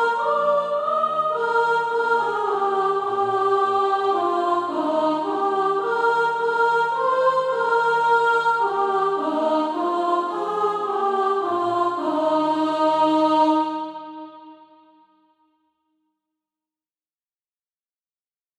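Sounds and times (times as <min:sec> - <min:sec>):
soprano singing practice music: 0:00.0 - 0:14.4.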